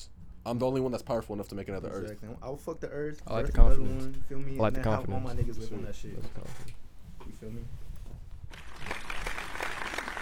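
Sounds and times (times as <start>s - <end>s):
speech: 0.4s - 6.8s, 7.4s - 7.8s
clapping: 8.5s - 10.2s.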